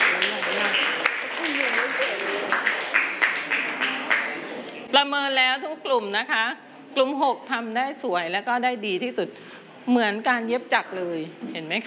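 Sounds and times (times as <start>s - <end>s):
group clapping in a classroom: 0.0s - 4.9s
murmur of voices and chatter: 0.0s - 5.8s
speech: 5.0s - 11.8s.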